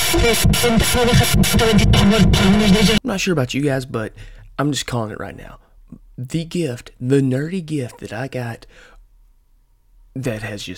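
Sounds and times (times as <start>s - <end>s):
radio static sound effect: 0.0s - 3.0s
speech: 0.2s - 8.9s, 10.1s - 10.7s.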